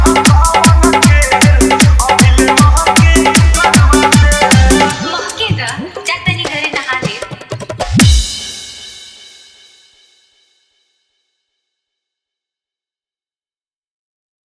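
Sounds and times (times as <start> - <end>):
dholak drum bass-heavy dance mix: 0.0 - 9.9.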